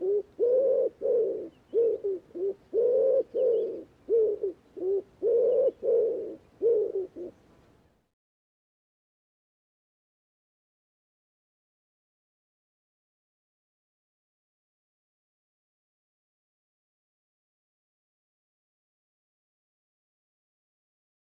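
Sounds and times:
bird cooing in low notes: 0:00.0 - 0:07.4.

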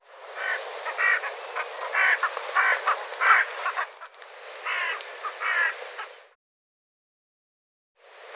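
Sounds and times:
bird giving harsh throaty calls: 0:00.4 - 0:04.0, 0:04.6 - 0:05.8.

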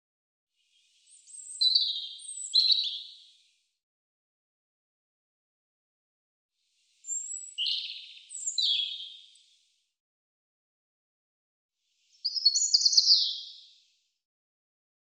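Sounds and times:
European robin singing warbling phrases: 0:01.1 - 0:03.1, 0:07.0 - 0:09.2, 0:12.2 - 0:13.5.

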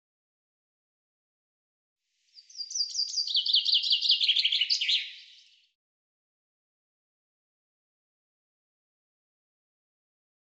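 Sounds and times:
bird delivering a rapid high-pitched chirping trill: 0:02.4 - 0:05.6.

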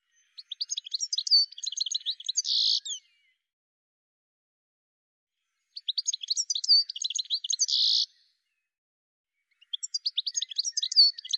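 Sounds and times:
bird song of rapid high chirps and twittering with a buzzy trill: 0:00.1 - 0:03.4, 0:05.6 - 0:08.2, 0:09.5 - 0:11.3.

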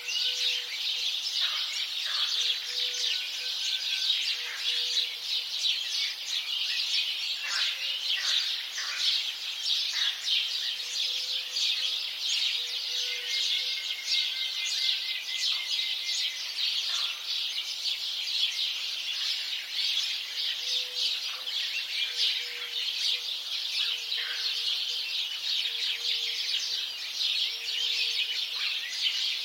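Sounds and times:
many house sparrows chirping en masse: 0:00.0 - 0:29.4.

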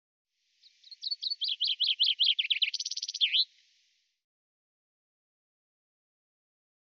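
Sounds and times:
bird trill: 0:00.8 - 0:03.5.

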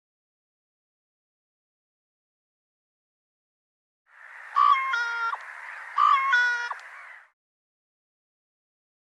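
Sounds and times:
bird calling reedy tone: 0:04.2 - 0:07.4.

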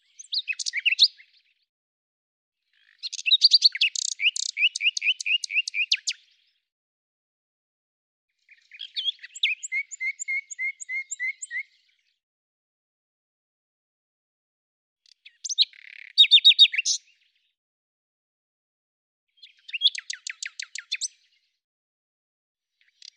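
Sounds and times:
bird song: 0:00.0 - 0:01.7, 0:02.6 - 0:06.7, 0:08.3 - 0:12.3, 0:15.0 - 0:17.6, 0:19.3 - 0:21.6, 0:22.7 - 0:23.1.

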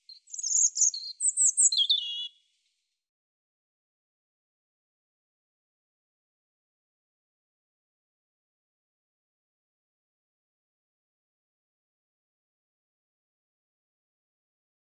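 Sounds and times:
European robin singing: 0:00.0 - 0:02.4.

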